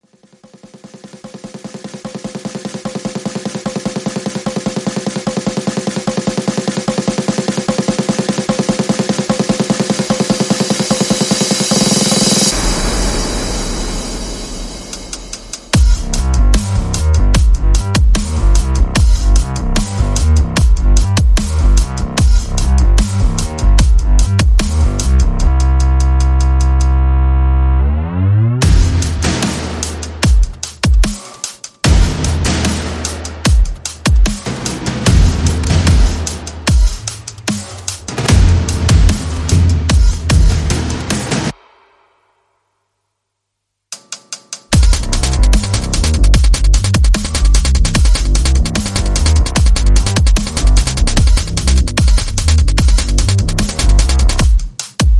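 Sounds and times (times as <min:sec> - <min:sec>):
percussion: 0:00.0 - 0:27.3, 0:28.6 - 0:42.2, 0:43.9 - 0:55.1
bass: 0:15.7 - 0:31.0, 0:31.9 - 0:41.5, 0:44.7 - 0:54.7.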